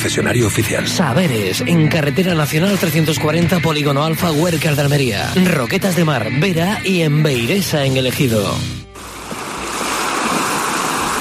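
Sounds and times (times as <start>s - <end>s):
speech: 0.0s - 8.9s
Mediterranean sea waves: 8.9s - 11.1s.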